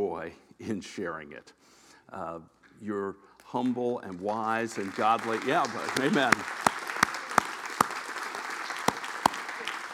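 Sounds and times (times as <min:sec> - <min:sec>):
speech: 0:00.2 - 0:06.7
audience clapping: 0:03.5 - 0:09.9.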